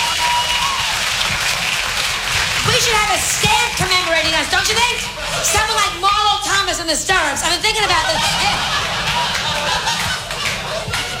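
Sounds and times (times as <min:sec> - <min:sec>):
audience applause at a stand-up comedy show: 0:00.0 - 0:06.0, 0:07.8 - 0:11.1
speech: 0:04.4 - 0:10.0
laughter: 0:04.7 - 0:06.0, 0:07.7 - 0:11.1.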